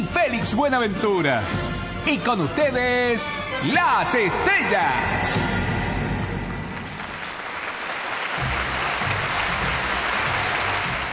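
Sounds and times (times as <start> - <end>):
speech: 0.3 - 5.6
studio audience clapping: 6.0 - 11.1.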